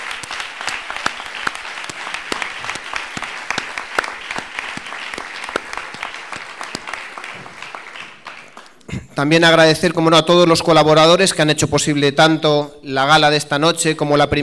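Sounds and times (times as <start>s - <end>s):
audience applause: 0.0s - 8.9s
speech: 9.2s - 14.4s.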